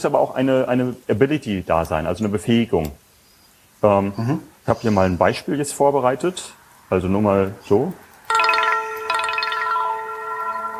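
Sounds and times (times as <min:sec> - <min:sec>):
speech: 0:00.0 - 0:03.0, 0:03.8 - 0:08.0
phone ringtone: 0:08.3 - 0:10.7.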